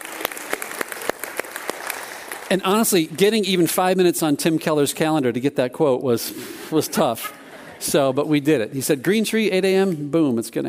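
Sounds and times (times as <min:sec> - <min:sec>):
audience applause: 0:00.0 - 0:03.2
speech: 0:02.5 - 0:10.6.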